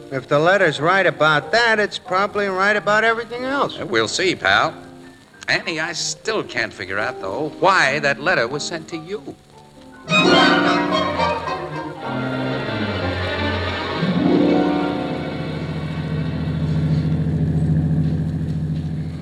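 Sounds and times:
speech: 0.1s - 4.9s, 5.5s - 9.5s
car engine droning while driving through fog: 10.2s - 19.2s.

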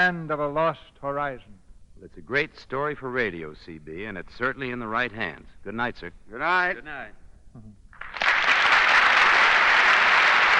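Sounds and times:
speech: 0.0s - 8.2s
studio audience applause: 8.0s - 10.5s.

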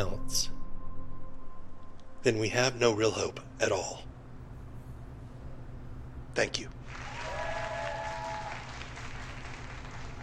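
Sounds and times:
speech: 0.3s - 0.5s, 2.2s - 4.1s, 6.4s - 6.8s
audience applause: 6.9s - 10.2s.

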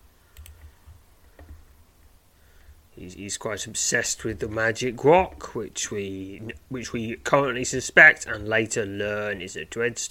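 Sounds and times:
computer clicks while clicking through a sequence: 0.3s - 1.6s
speech: 3.0s - 10.0s.

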